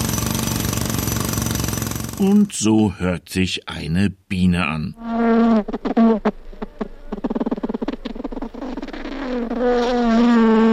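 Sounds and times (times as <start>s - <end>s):
jackhammer pounding: 0.0s - 2.6s
speech: 2.2s - 6.9s, 9.4s - 10.6s.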